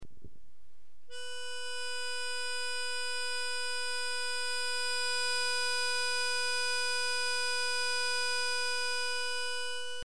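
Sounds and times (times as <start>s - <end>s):
musical note B natural: 1.1s - 10.0s.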